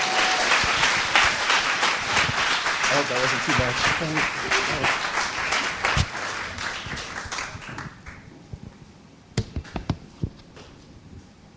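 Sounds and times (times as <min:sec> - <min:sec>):
audience applause: 0:00.0 - 0:08.3
speech: 0:03.0 - 0:05.2.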